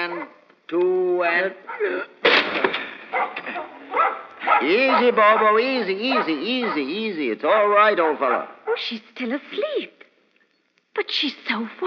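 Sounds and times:
speech: 0.7s - 2.7s, 4.6s - 10.0s, 11.0s - 11.8s
door being forced open with heavy chair: 2.2s - 3.8s.

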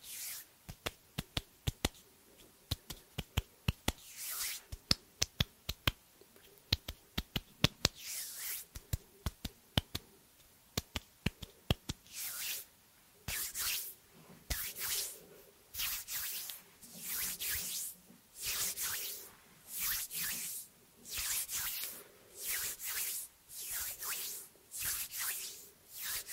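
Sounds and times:
soft hissing hand rubs: 0.1s - 10.1s, 10.7s - 12.7s, 13.3s - 26.3s
hand snaps and taps: 4.8s - 6.0s, 6.7s - 8.0s, 8.9s - 10.1s, 10.7s - 12.0s.

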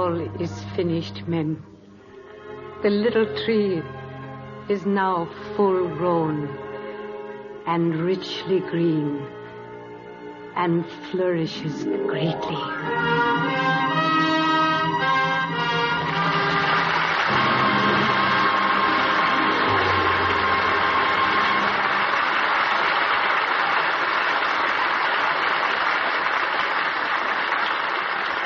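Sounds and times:
speech: 0.0s - 1.8s, 2.8s - 4.0s, 4.7s - 6.6s, 7.7s - 9.4s, 10.6s - 14.0s
orchestral music: 0.0s - 22.8s
audience applause: 15.7s - 28.4s.

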